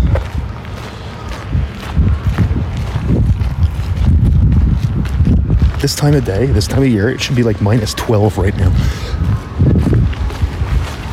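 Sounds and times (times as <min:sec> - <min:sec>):
wind outdoors on a mild winter day of about four degrees: 0:00.0 - 0:11.1
speech: 0:05.8 - 0:09.2.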